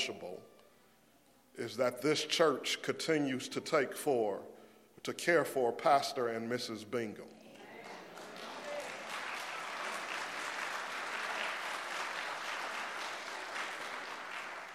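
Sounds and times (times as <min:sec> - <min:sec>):
speech: 0:00.0 - 0:00.5, 0:01.6 - 0:07.4
sustained applause from a large group: 0:07.6 - 0:14.7.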